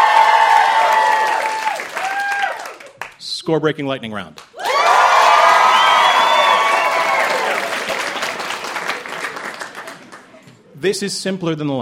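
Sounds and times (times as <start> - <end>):
audience applause: 0.0 - 3.1, 4.6 - 10.4
speech: 3.4 - 4.5, 10.8 - 11.8.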